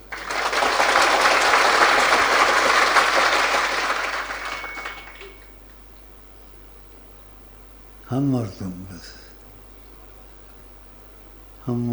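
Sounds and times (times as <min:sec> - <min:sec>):
audience clapping: 0:00.0 - 0:05.8
speech: 0:08.2 - 0:09.2.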